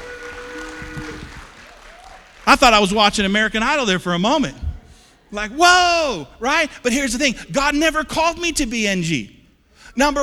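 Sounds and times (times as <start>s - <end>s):
audience applause: 0.0s - 3.0s
speech: 2.5s - 4.6s, 5.3s - 9.4s, 10.0s - 10.2s.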